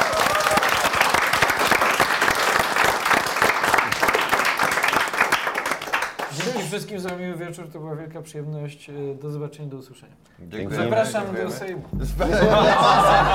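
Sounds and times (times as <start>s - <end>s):
live audience applause: 0.0s - 6.6s
speech: 6.7s - 13.3s
laughter: 12.0s - 13.3s.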